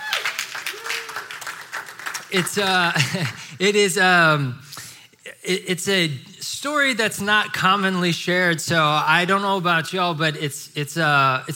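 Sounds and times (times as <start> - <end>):
applause: 0.0 - 3.4
speech: 2.3 - 4.6, 5.5 - 11.5
laughter: 2.4 - 3.5.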